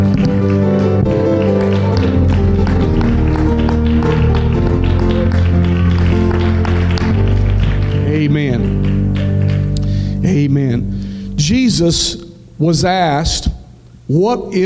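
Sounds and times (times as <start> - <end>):
audience clapping: 0.0 - 10.5
speech: 11.8 - 13.5, 14.1 - 14.6.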